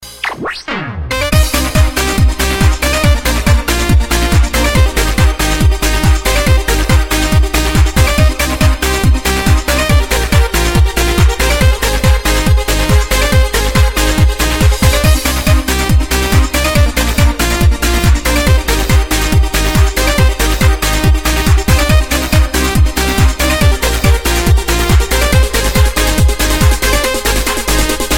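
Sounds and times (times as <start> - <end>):
techno music: 0.0 - 28.1.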